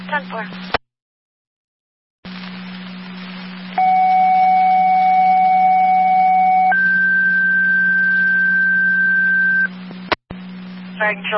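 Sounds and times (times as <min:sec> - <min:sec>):
fire dispatch paging tones: 0:03.8 - 0:09.7.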